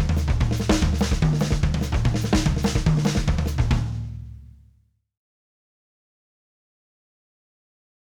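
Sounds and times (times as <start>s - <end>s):
bass drum: 0.0s - 4.7s.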